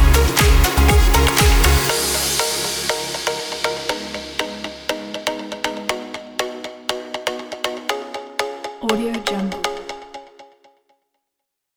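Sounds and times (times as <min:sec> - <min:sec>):
party dance music: 0:00.0 - 0:06.4, 0:08.8 - 0:10.2.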